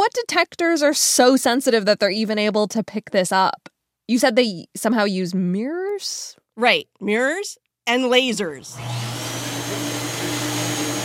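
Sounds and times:
speech: 0.1 - 9.1
shoe scrubbing machine at a gravitational wave observatory: 8.7 - 11.0.

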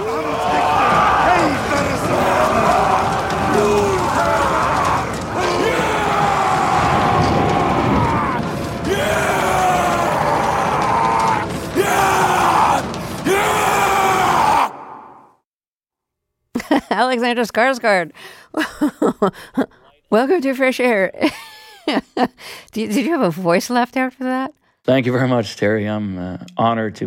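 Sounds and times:
warriors chanting around a bonfire: 0.0 - 15.2
warriors roaring around a bonfire: 0.0 - 15.4
speech: 17.1 - 27.0.

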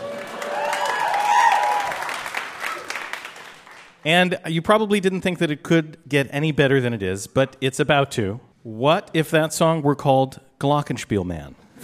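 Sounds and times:
high whistle or cheer from audience: 0.0 - 2.9
audience clapping: 0.0 - 4.0
speech: 4.0 - 11.8.

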